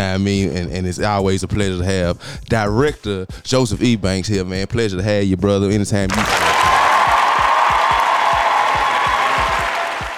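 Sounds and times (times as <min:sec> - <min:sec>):
speech: 0:00.2 - 0:06.6
audience applause greeting a returning guest: 0:06.1 - 0:10.1.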